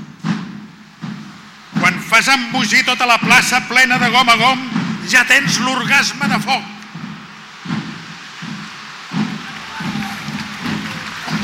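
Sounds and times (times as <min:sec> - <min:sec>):
speech: 0:02.2 - 0:06.8
audience applauding: 0:07.3 - 0:11.4.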